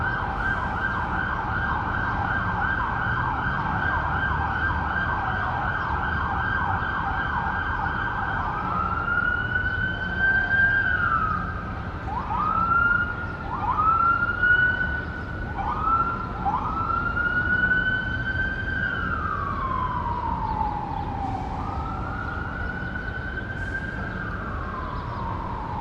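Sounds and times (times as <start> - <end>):
cars on busy streets in downtown LA: 0.0 - 25.7
sirens in downtown LA Pershing Square: 0.0 - 25.7
birds in downtown LA Pershing Square: 19.8 - 25.7.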